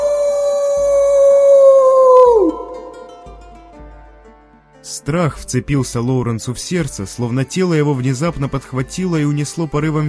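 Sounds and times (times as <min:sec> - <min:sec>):
young woman howling like a wolf: 0:00.0 - 0:03.4
speech: 0:05.0 - 0:10.0.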